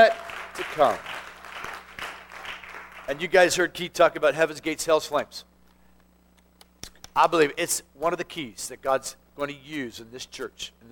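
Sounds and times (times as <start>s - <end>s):
speech: 0.0s - 1.2s, 3.1s - 5.5s, 7.2s - 10.9s
audience clapping hands: 0.0s - 3.2s.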